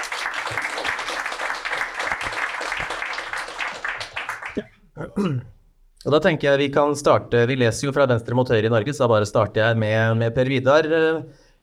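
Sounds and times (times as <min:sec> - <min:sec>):
audience applause: 0:00.0 - 0:04.6
speech: 0:04.6 - 0:11.4.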